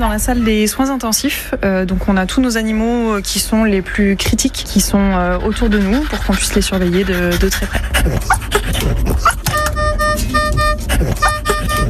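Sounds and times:
speech: 0:00.0 - 0:09.4
hum: 0:00.0 - 0:11.8
infusion pump alarms beeping: 0:09.5 - 0:11.8.

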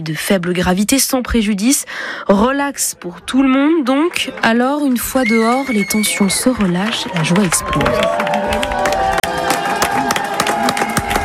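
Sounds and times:
speech: 0:00.0 - 0:09.1
crowd applauding and cheering outside court: 0:05.1 - 0:11.2.

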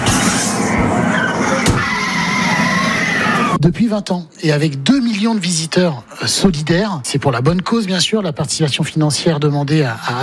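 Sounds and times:
city traffic with cars rushing past: 0:00.0 - 0:03.6
sharp squeal: 0:00.0 - 0:03.6
speech: 0:03.6 - 0:10.2.

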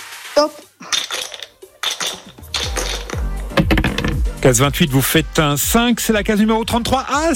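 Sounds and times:
speech: 0:00.4 - 0:00.7, 0:04.4 - 0:07.3
dice rolling: 0:00.8 - 0:04.2.

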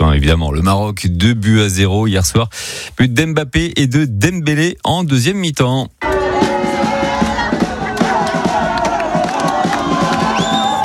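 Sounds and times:
speech: 0:00.2 - 0:06.4
football fans celebrating in the street: 0:06.0 - 0:10.8.

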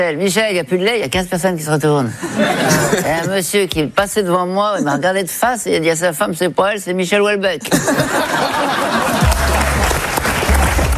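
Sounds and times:
speech: 0:00.0 - 0:09.4
laughter: 0:02.2 - 0:03.3, 0:07.7 - 0:10.9
audience applause: 0:08.4 - 0:10.9.

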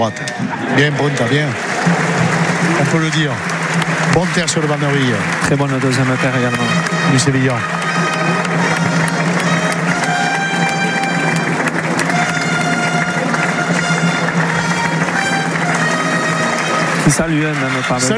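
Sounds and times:
speech: 0:00.0 - 0:07.8, 0:17.1 - 0:18.1
bullring crowd applauding at arènes du parc Théodore Denis: 0:00.0 - 0:18.1.

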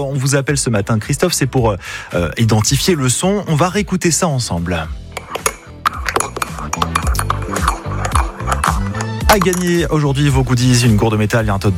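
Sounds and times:
speech: 0:00.0 - 0:05.0, 0:09.3 - 0:11.7
spoon clinking against a mug: 0:05.2 - 0:09.8.

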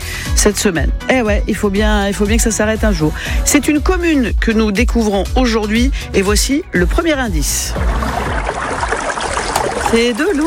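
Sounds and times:
speech: 0:00.4 - 0:08.0, 0:09.9 - 0:10.4
running water: 0:06.8 - 0:10.4.

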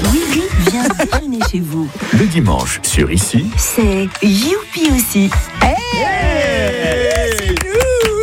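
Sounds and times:
laughter: 0:00.2 - 0:02.1, 0:06.1 - 0:08.2
speech: 0:01.5 - 0:07.4
applause: 0:06.2 - 0:08.2.

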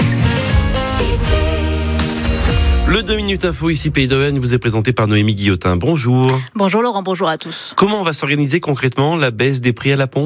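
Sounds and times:
upbeat radio station hourly chime jingle: 0:00.2 - 0:06.4
speech: 0:03.0 - 0:10.2.

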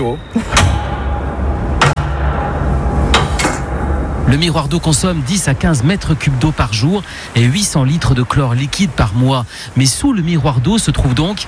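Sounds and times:
speech: 0:00.0 - 0:00.7, 0:04.3 - 0:11.4
constant rushing noise: 0:00.0 - 0:11.4
trap door opened with a heavy metallic clunk: 0:00.4 - 0:04.4
sharp knocks: 0:00.5 - 0:05.4.

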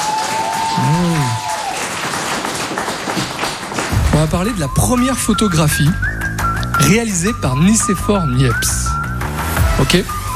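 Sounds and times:
audience applause: 0:00.0 - 0:04.6
speech: 0:04.2 - 0:06.1, 0:06.8 - 0:08.9, 0:09.8 - 0:10.2.

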